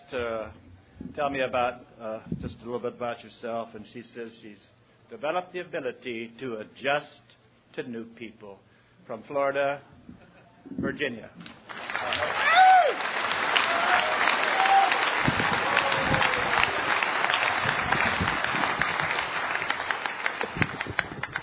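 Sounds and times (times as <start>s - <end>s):
speech: 0.1s - 12.3s
large crowd applauding a speaker: 11.6s - 21.4s
whoops and whistles: 13.6s - 16.6s.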